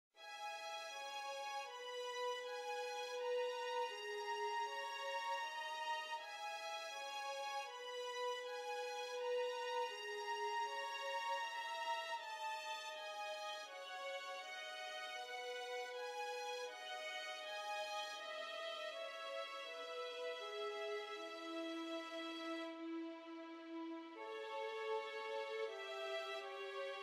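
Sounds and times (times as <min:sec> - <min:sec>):
duo of two violins: 0:00.5 - 0:27.0.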